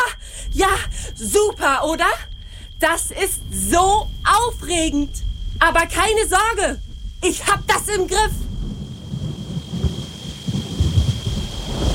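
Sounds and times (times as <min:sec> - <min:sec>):
speech: 0:00.6 - 0:08.4
heavy rain falling: 0:05.8 - 0:11.9
low rolling thunder: 0:06.8 - 0:11.9.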